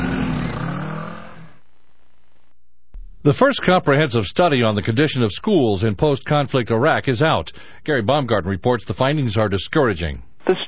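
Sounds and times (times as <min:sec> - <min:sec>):
car driving off: 0:00.0 - 0:01.6
speech: 0:03.2 - 0:10.6.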